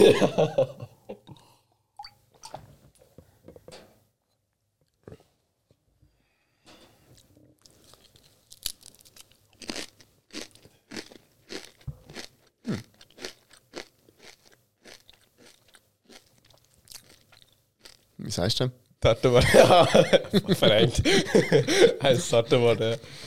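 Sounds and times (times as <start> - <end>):
laughter: 0.0 - 1.2, 19.2 - 23.2
speech: 0.1 - 0.8, 18.4 - 23.2
crunching and chewing a fried pressed lentil snack: 7.2 - 18.1.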